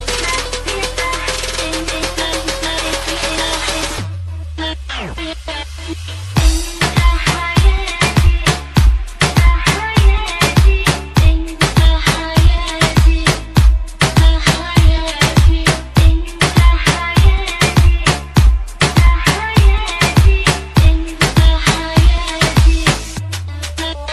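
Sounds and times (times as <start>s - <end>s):
Arabic car remix music: 0.0s - 24.1s.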